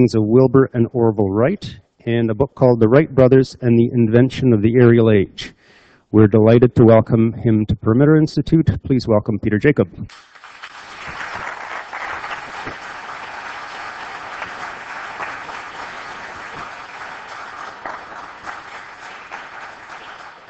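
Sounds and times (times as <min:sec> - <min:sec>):
speech: 0:00.0 - 0:10.3
audience applause: 0:10.1 - 0:20.4.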